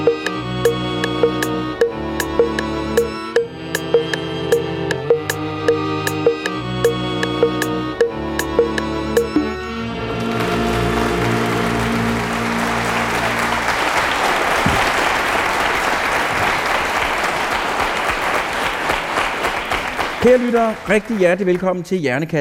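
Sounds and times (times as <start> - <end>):
sustained musical notes: 0.0 - 14.4
studio audience applauding at the opening of a radio science program: 10.1 - 21.9
speech: 20.3 - 22.3.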